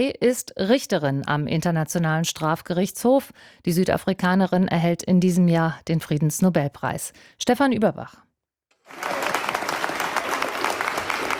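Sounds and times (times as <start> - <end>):
speech: 0.0 - 8.2
spontaneous applause in a courtroom hall: 8.8 - 11.3.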